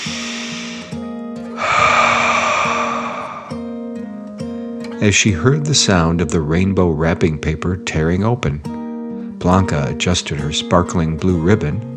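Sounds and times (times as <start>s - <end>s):
deep breath in and out: 0.0s - 3.9s
speech: 5.0s - 8.7s, 9.4s - 11.9s.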